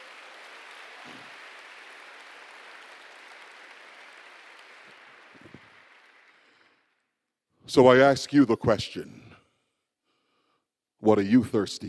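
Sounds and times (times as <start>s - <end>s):
audience clapping: 0.0s - 7.1s
speech: 7.7s - 9.2s, 11.1s - 11.8s.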